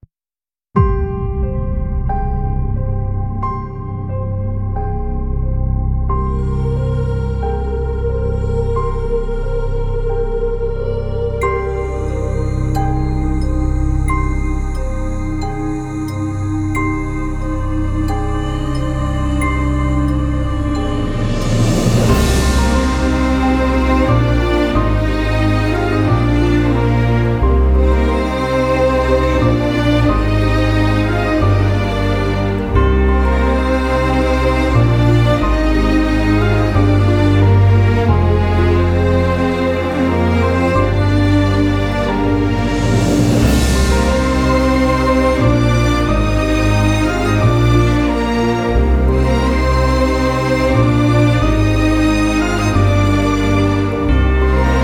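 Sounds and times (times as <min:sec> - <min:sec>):
orchestral music: 0:00.8 - 0:54.8.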